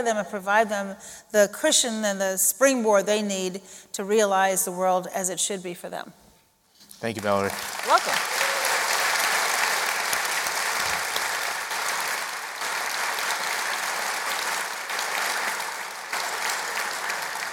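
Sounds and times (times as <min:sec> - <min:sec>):
speech: 0:00.0 - 0:06.2, 0:07.0 - 0:08.2
audience applause: 0:07.0 - 0:17.5.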